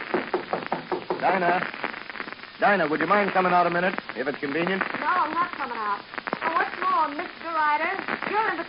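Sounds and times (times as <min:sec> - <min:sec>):
knocking on a door: 0:00.1 - 0:01.3
speech: 0:01.2 - 0:01.9, 0:02.6 - 0:08.6.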